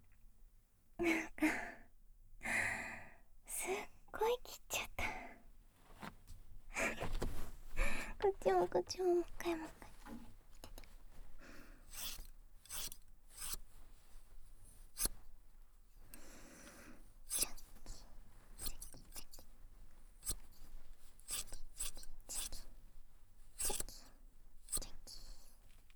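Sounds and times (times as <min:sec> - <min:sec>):
speech: 0:01.0 - 0:01.6, 0:08.4 - 0:09.8
soft whispering: 0:03.5 - 0:05.4, 0:06.7 - 0:11.0, 0:17.3 - 0:19.4, 0:21.3 - 0:22.8, 0:23.6 - 0:25.6
scissors snipping through hair: 0:11.9 - 0:13.6, 0:17.3 - 0:17.7, 0:18.6 - 0:19.4, 0:20.2 - 0:20.5, 0:21.2 - 0:22.6, 0:23.6 - 0:24.0.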